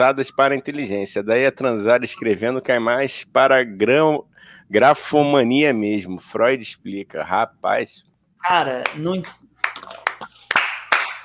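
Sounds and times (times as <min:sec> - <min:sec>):
speech: 0:00.0 - 0:10.0
hand clapping: 0:08.5 - 0:11.2.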